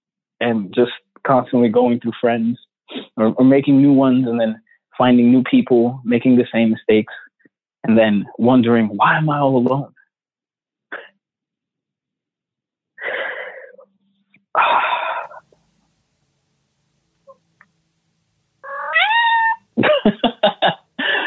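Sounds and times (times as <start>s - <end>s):
speech: 0.4s - 7.2s, 7.8s - 10.0s
cat meowing: 18.6s - 19.7s
laughter: 19.8s - 21.2s.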